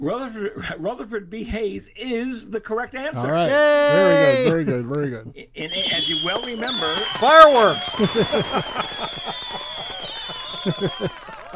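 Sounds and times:
speech: 0:00.0 - 0:09.2, 0:10.6 - 0:11.3
laughter: 0:03.2 - 0:11.5
canned applause and crowd noise: 0:05.7 - 0:11.5.

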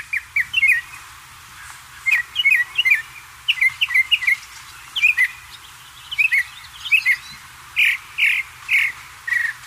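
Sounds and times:
northern mockingbird singing and mimicking other birds: 0:00.0 - 0:09.6.

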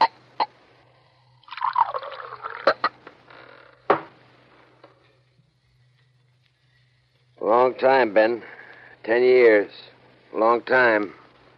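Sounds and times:
drink pouring into a glass: 0:01.4 - 0:02.9
glass being set down: 0:03.9 - 0:04.2
speech: 0:07.5 - 0:11.2.

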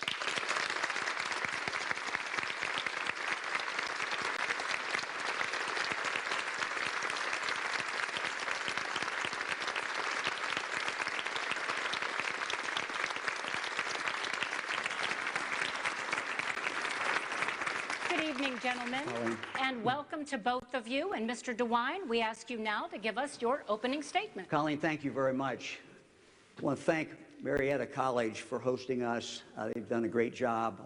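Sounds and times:
audience applause at a televised debate at Marietta College: 0:00.0 - 0:19.8
speech: 0:18.6 - 0:25.9, 0:26.6 - 0:30.8.

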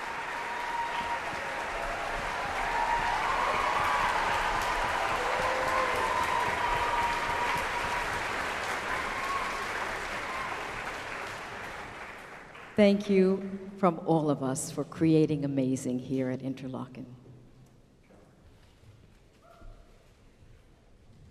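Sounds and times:
audience applause: 0:00.0 - 0:12.8
speech: 0:12.8 - 0:17.2.

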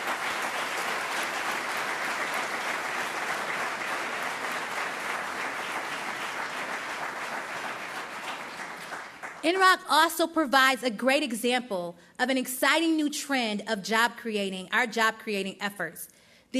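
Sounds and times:
sustained applause from a sizable crowd: 0:00.0 - 0:09.4
speech: 0:09.4 - 0:16.5.

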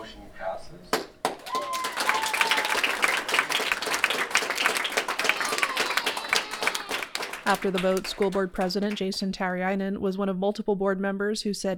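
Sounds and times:
audience applause after a vote: 0:01.2 - 0:09.1
audience cheering after a vote: 0:01.3 - 0:08.4
speech: 0:07.5 - 0:11.7.

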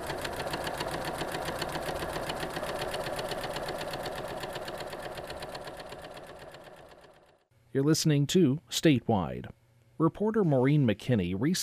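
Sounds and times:
sewing machine running a zigzag stitch: 0:00.0 - 0:07.4
speech: 0:07.8 - 0:11.6.

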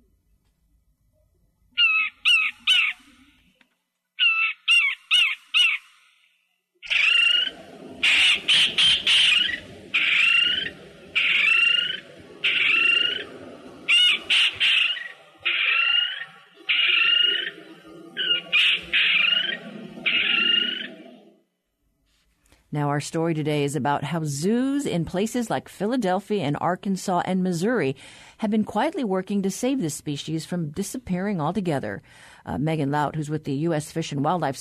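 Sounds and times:
Micronesian kingfisher calls: 0:01.8 - 0:03.2, 0:04.2 - 0:05.9, 0:06.8 - 0:21.1
low rumbling background: 0:06.9 - 0:21.2
speech: 0:23.0 - 0:34.5.

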